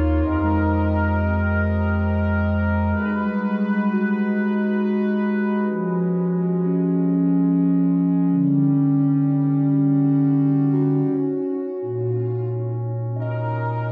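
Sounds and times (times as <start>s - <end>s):
sustained brass chords: 0.0s - 13.9s.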